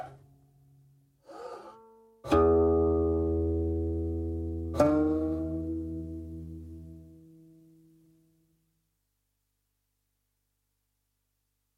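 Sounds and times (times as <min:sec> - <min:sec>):
guqin playing a demonstration piece: 0:02.3 - 0:07.2.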